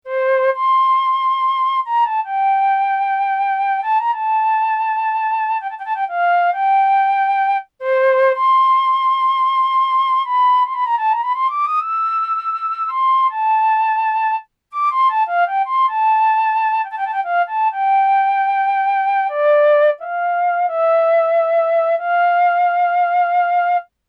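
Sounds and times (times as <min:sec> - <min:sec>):
flute: 0:00.0 - 0:23.9.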